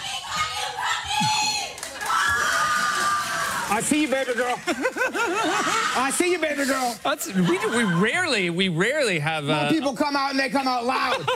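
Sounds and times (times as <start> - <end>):
audience screaming and cheering loudly: 0.0 - 6.5
laughter: 2.8 - 9.0, 10.8 - 11.3
speech: 3.7 - 11.3.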